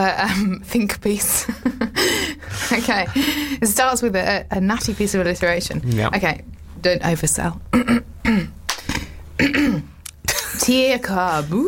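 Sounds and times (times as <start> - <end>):
speech: 0.0 - 1.9, 2.7 - 8.6, 10.7 - 11.6
person clearing throat: 7.7 - 8.6, 9.4 - 10.6.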